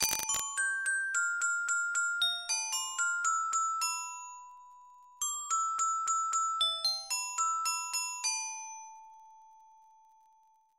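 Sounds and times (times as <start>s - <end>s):
music box: 0.0s - 10.7s.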